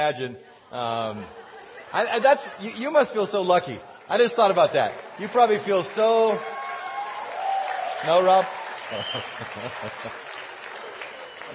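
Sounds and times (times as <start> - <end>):
speech: 0.0 - 6.5, 8.0 - 10.2
laughter: 1.0 - 3.2, 8.8 - 10.5
audience clapping: 4.1 - 11.5.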